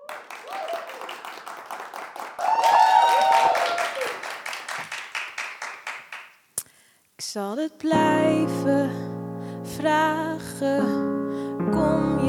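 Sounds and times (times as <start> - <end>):
cheering and whistles: 0.0 - 1.1, 2.4 - 4.2
audience applause: 0.0 - 6.3
speech: 7.4 - 9.1, 9.8 - 12.2.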